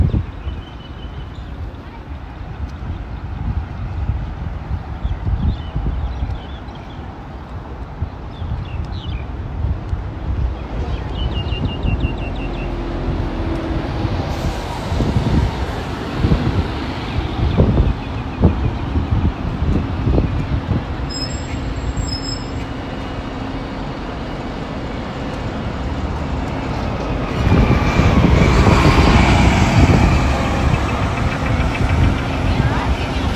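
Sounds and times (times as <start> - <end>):
traffic rumble in Modiin, Israel: 0.0 - 33.3
vehicles passing: 0.0 - 33.3
wind buffeting: 0.0 - 33.3
high beep: 21.1 - 22.6.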